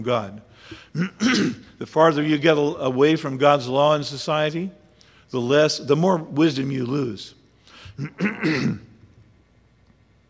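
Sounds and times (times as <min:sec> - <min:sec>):
speech: 0:00.0 - 0:08.9
throat clearing from a speaker bothered by allergies: 0:00.7 - 0:01.7, 0:07.8 - 0:08.9.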